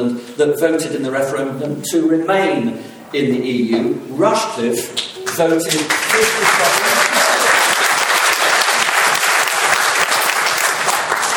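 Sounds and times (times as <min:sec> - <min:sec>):
speech: 0:00.0 - 0:06.8
audience applause for the Rushcliffe constituency and its MP: 0:05.0 - 0:11.3.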